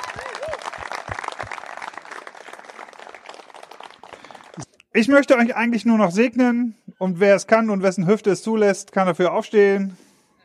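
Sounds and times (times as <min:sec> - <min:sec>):
audience clapping: 0:00.0 - 0:04.7
speech: 0:04.6 - 0:10.0.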